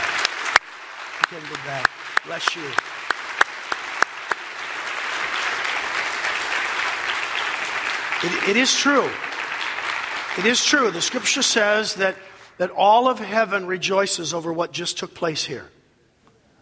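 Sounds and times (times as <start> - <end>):
audience applause: 0.0 - 11.8
speech: 1.3 - 3.0, 8.2 - 9.3, 10.4 - 15.8.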